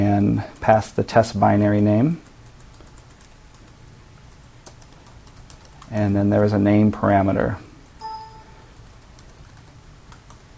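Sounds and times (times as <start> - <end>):
speech: 0.1 - 2.3, 5.9 - 7.7
computer keyboard typing a test command: 2.2 - 6.0, 8.0 - 10.4.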